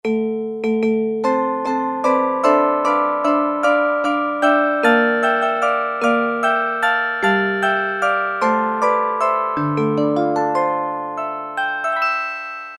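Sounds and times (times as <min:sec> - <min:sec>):
glockenspiel: 0:00.0 - 0:12.7.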